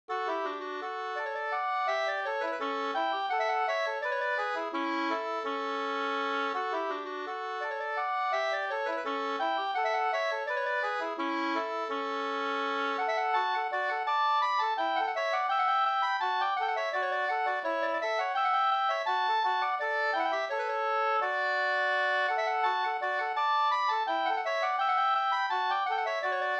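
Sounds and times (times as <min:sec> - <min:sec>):
folk walking tune: 0:00.1 - 0:26.5.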